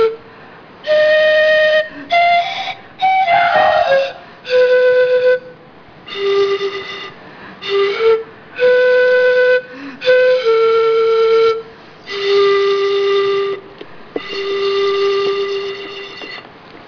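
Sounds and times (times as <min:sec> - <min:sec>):
solo pan flute: 0:00.0 - 0:16.4.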